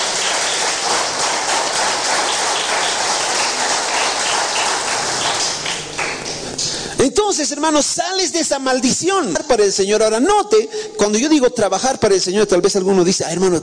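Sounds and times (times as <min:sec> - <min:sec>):
audience applause: 0:00.0 - 0:06.7
speech: 0:07.3 - 0:13.6.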